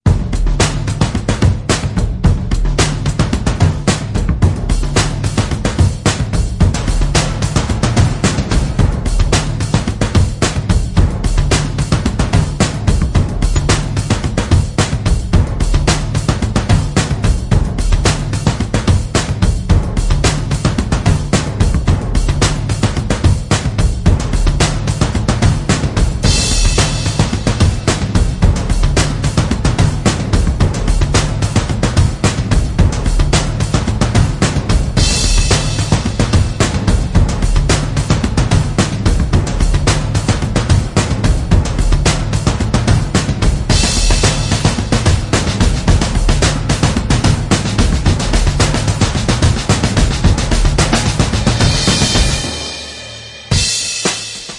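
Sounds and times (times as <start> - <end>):
drums: 0.0 - 54.5.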